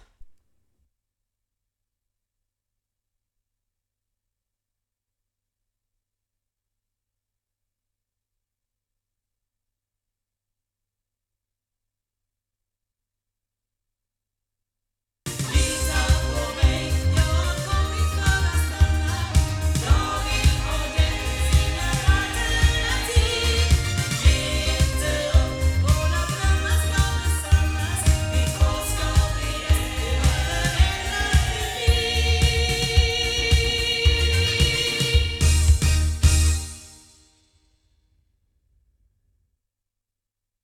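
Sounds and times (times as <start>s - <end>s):
loudspeakers: 15.3s - 36.5s.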